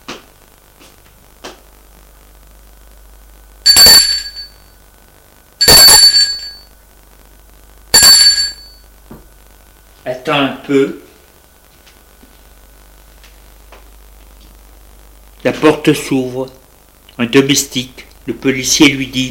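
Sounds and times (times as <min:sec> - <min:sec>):
apartment doorbell ringing: 0:03.7 - 0:04.6, 0:05.6 - 0:06.6, 0:08.0 - 0:08.8
speech: 0:10.1 - 0:11.0, 0:15.4 - 0:16.6, 0:17.2 - 0:19.2.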